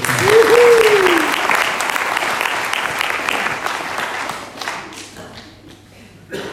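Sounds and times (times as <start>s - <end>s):
person whooping: 0.0s - 1.6s
audience applause: 0.0s - 5.6s.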